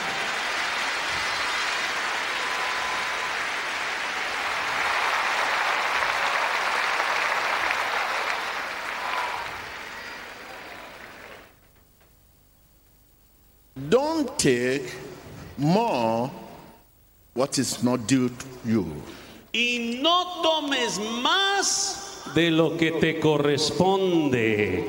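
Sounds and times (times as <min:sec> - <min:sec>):
audience applause: 0:00.0 - 0:11.6
speech: 0:13.9 - 0:15.0, 0:15.6 - 0:16.4, 0:17.4 - 0:24.8.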